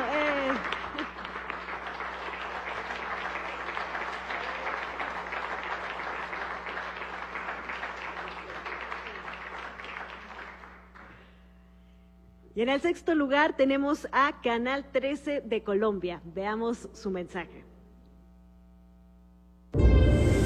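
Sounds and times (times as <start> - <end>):
audience applause: 0.0 - 11.2
faint low hum: 0.0 - 20.4
speech: 12.6 - 17.6.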